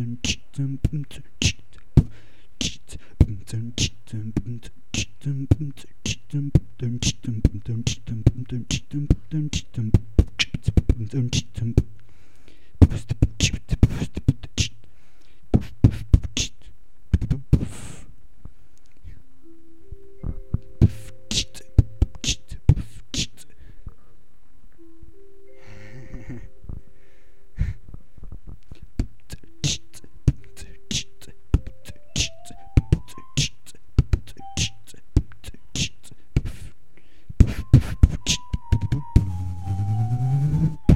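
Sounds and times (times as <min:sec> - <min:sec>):
person beatboxing freestyle: 0:00.0 - 0:11.9, 0:12.8 - 0:14.8, 0:15.6 - 0:18.0, 0:20.8 - 0:23.6, 0:28.8 - 0:36.8, 0:37.4 - 0:40.9.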